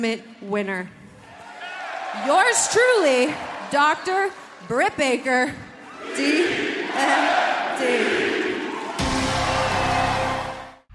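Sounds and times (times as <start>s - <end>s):
speech: 0.0s - 1.0s, 2.2s - 8.2s
large crowd cheering and roaring: 1.2s - 4.7s, 5.8s - 10.9s.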